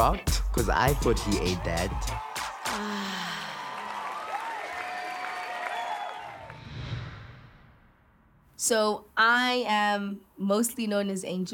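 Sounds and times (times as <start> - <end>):
speech: 0.0 - 3.0, 8.6 - 11.5
audience cheering for winner: 0.5 - 7.2
audience applause for winner: 0.6 - 6.6.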